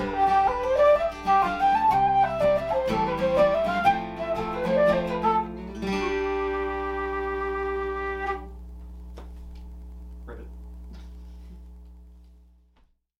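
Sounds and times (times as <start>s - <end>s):
flute: 0.0s - 8.5s
guitar: 0.0s - 12.0s.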